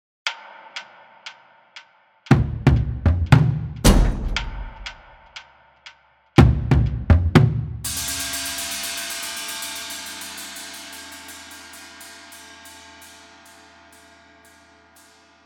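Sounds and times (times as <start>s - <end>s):
trailer drum kit: 2.3s - 5.2s, 6.4s - 7.9s.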